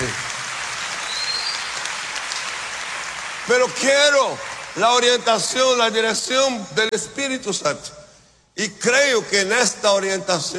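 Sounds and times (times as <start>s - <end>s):
audience applause during a sermon-style address: 0.0s - 5.0s
speech: 3.5s - 8.0s, 8.6s - 10.5s.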